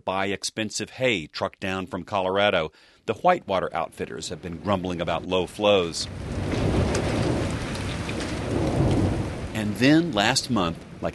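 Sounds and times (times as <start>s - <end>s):
speech: 0.0s - 6.6s, 9.8s - 11.1s
monsoon thunderstorm with heavy rain: 4.5s - 11.1s.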